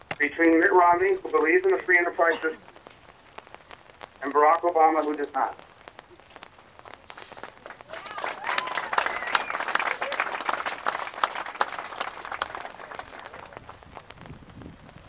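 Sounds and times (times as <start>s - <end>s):
speech: 0.2s - 2.7s, 4.2s - 5.6s
audience applause: 7.2s - 14.0s
people cheering: 7.6s - 13.8s.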